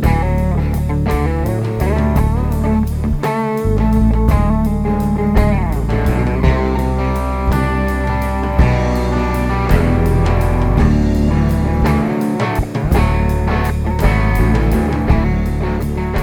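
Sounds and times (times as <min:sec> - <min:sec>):
waltz music: 0:00.2 - 0:16.1.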